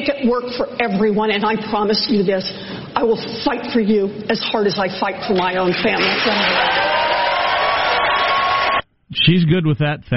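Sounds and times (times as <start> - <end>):
speech: 0.2 - 7.0, 9.2 - 10.1
crowd cheering: 5.2 - 8.8.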